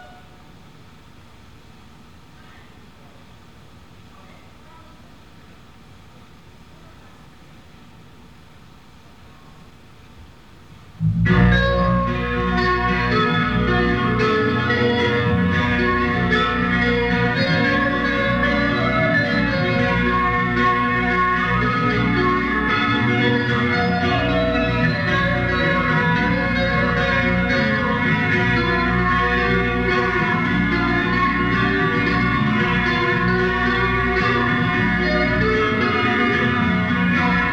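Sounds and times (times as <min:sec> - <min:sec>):
soundcheck: 0:11.0 - 0:37.5.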